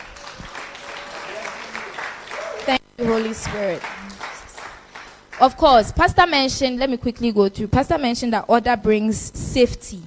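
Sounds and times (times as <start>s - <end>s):
crowd applause: 0.0s - 6.0s
speech: 2.7s - 4.0s, 5.4s - 10.0s.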